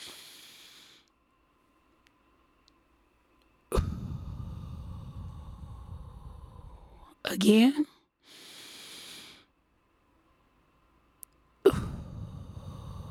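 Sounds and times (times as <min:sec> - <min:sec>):
deep breathing during a breathing exercise: 0:00.0 - 0:01.1, 0:03.7 - 0:07.2, 0:08.2 - 0:09.6, 0:11.7 - 0:13.0
speech: 0:07.3 - 0:07.9.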